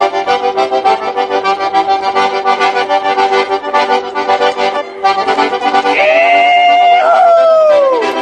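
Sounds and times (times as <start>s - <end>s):
accordion music: 0.0s - 8.1s
excited little shriek: 5.9s - 8.1s.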